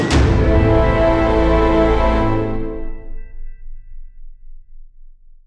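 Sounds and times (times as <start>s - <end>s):
music stings: 0.1s - 4.5s.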